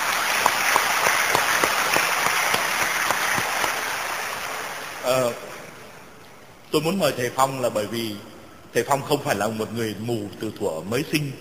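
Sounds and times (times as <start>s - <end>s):
audience applauding: 0.0s - 5.5s
speech: 6.7s - 11.3s.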